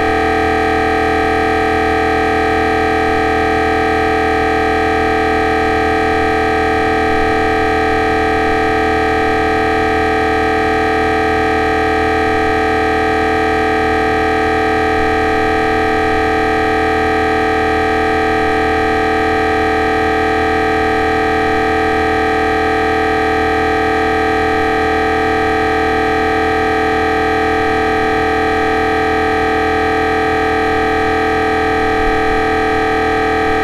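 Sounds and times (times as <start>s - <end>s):
MRI scanner noises: 0.0s - 33.6s.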